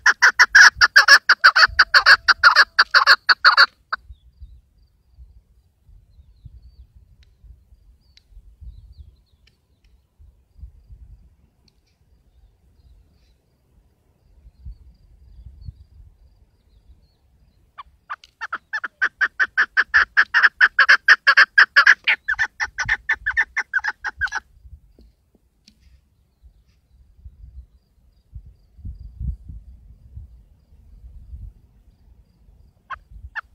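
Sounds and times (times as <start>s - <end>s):
keklik partridge calling: 0.0s - 4.3s, 16.9s - 24.5s, 32.9s - 33.5s.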